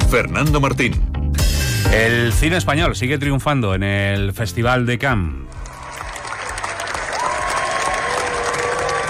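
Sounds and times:
speech: 0.1 - 1.1, 1.9 - 5.5
crowd giving long standing ovation at film festival: 5.5 - 9.0.

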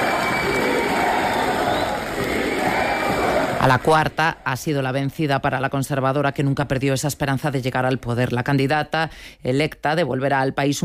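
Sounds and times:
large crowd cheering and applauding: 0.0 - 4.4
speech: 3.6 - 10.8.

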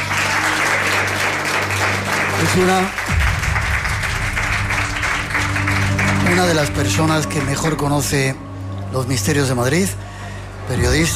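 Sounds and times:
audience applause: 0.0 - 7.8
speech: 2.6 - 3.0, 6.4 - 10.1, 10.7 - 11.1.

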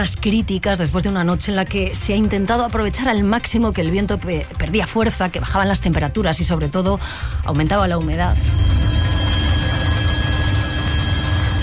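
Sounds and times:
speech: 0.0 - 8.8
helicopters: 8.5 - 11.6.

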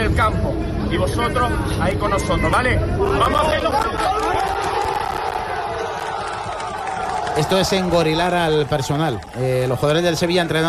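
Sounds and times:
speech: 0.1 - 4.6, 7.4 - 10.6
crowd of football fans cheering and chanting: 3.6 - 10.6.

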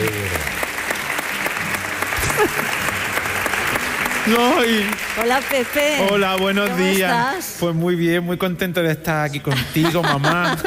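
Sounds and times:
audience applause: 0.0 - 7.6
laughter: 2.2 - 3.0, 9.3 - 10.6
speech: 4.3 - 10.6.

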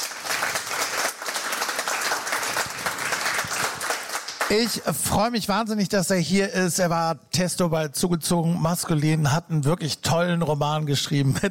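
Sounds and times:
audience applauding: 0.0 - 4.9
speech: 4.5 - 11.5.

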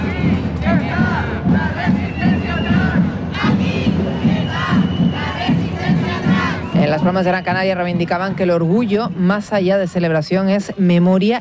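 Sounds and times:
demonstration crowd chanting: 0.0 - 7.2
speech: 7.0 - 11.3.

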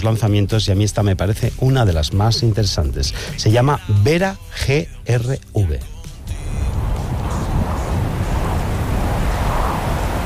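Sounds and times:
speech: 0.0 - 5.9
ocean waves: 6.0 - 10.2.

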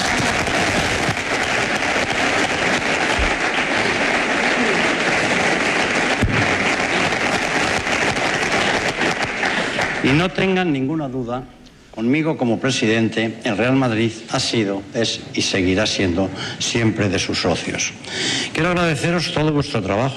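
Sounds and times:
audience applause: 0.0 - 10.6
speech: 10.1 - 20.1.

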